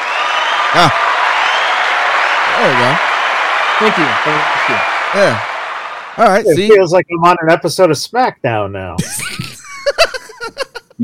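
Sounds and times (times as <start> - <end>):
crowd clapping sound effect: 0.0 - 6.7
speech: 0.7 - 1.1, 2.6 - 3.1, 3.8 - 5.5, 6.2 - 9.5
laughter: 9.0 - 11.0.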